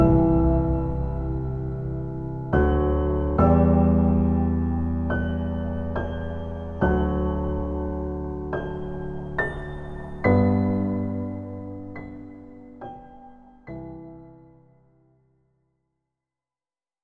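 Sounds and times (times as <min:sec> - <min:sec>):
emotional piano soundscape: 0:00.0 - 0:15.2.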